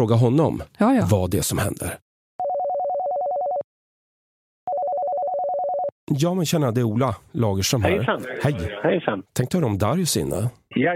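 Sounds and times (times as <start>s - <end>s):
speech: 0.0s - 2.0s, 6.1s - 10.9s
phone call ringing tone: 2.4s - 3.7s, 4.7s - 5.9s.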